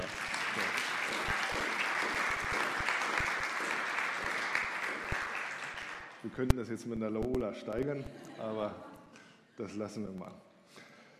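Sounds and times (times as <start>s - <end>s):
audience applause for the brass players: 0.0s - 6.4s
speech: 6.2s - 8.9s, 9.6s - 10.4s.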